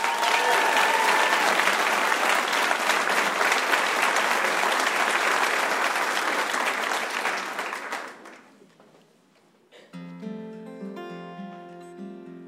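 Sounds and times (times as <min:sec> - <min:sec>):
audience applause: 0:00.0 - 0:08.6.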